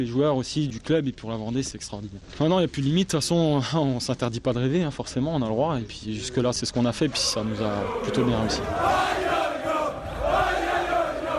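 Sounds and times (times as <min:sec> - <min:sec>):
speech: 0:00.0 - 0:09.2
football players singing a victory chant: 0:07.3 - 0:11.3.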